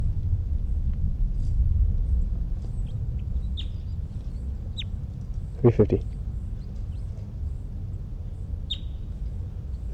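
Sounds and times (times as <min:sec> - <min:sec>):
steady low rumble: 0:00.0 - 0:09.9
bird singing: 0:02.1 - 0:09.9.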